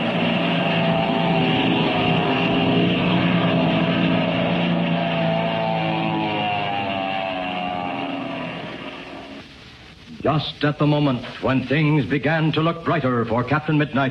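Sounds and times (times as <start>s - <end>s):
black plane diving out of the crimson sky: 0.0s - 10.0s
speech: 10.3s - 14.0s.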